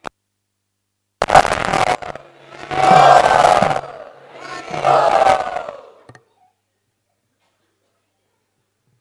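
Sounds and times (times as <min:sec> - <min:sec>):
low steady drone: 0:01.7 - 0:06.1
crowd chanting loudly together in gratitude: 0:01.7 - 0:06.2.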